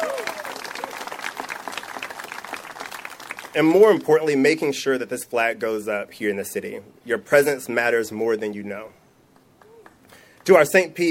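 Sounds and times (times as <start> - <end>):
audience applause: 0.0 - 3.8
speech: 3.6 - 9.0, 10.4 - 11.0.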